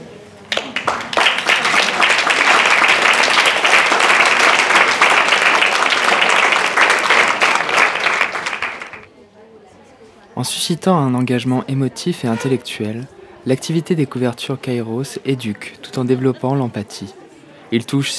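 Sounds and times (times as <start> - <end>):
audience applause: 0.0 - 9.1
laughter: 0.0 - 9.1, 12.2 - 18.1
speech: 10.4 - 18.1.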